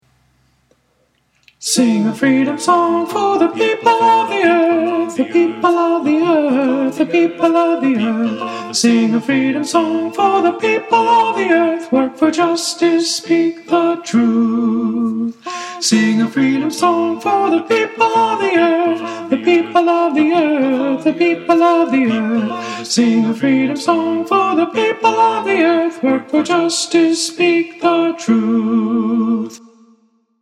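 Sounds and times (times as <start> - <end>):
alto voice singing: 1.6 - 29.8.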